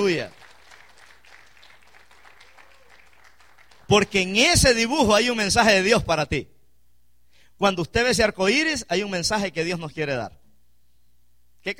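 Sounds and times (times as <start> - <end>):
speech: 0.0 - 0.4, 3.9 - 6.5, 7.6 - 10.4
church congregation clapping during a sermon: 0.0 - 4.8.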